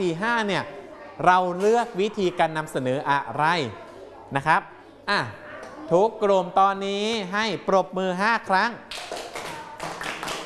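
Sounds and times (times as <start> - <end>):
speech: 0.0 - 9.0
class clapping: 8.9 - 10.4.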